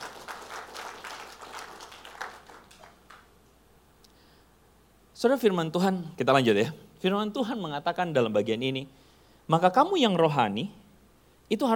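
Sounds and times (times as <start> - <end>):
audience applause: 0.0 - 3.4
speech: 5.2 - 10.8, 11.5 - 11.7.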